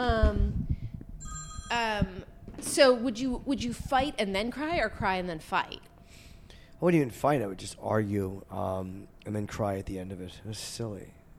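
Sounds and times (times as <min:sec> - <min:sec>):
mobile phone ringtone: 0:01.2 - 0:02.2
speech: 0:01.7 - 0:05.9, 0:06.8 - 0:11.3.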